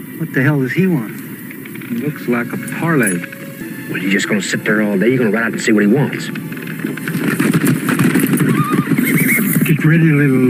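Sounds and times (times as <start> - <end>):
speech: 0.2 - 1.2, 1.9 - 7.1, 9.8 - 10.4
horse hooves clip-clopping: 0.8 - 10.4
horse whinnying in a western setting: 1.9 - 5.2, 6.5 - 9.7.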